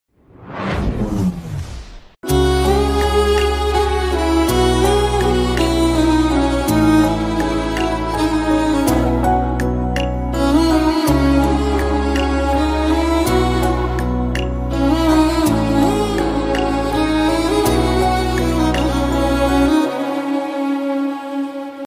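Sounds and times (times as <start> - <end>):
violin background music ringtone: 2.2 - 21.8.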